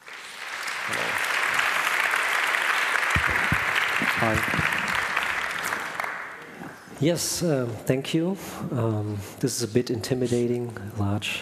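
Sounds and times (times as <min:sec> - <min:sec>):
audience applause welcoming two speakers at a talk: 0:00.0 - 0:06.6
speech: 0:04.2 - 0:04.7, 0:07.0 - 0:11.4.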